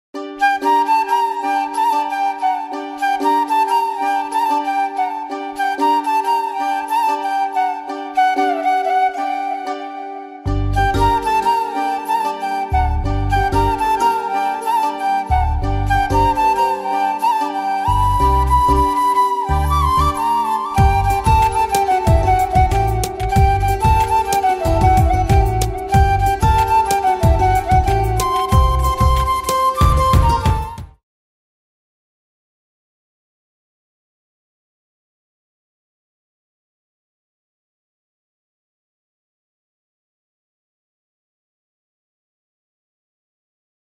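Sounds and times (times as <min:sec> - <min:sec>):
flute background music ringtone: 0:00.2 - 0:31.0.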